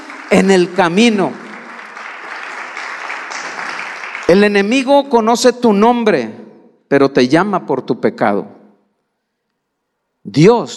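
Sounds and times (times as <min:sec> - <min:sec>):
audience applause: 0:00.0 - 0:04.7
speech: 0:00.3 - 0:01.4, 0:04.3 - 0:08.6, 0:10.2 - 0:10.7.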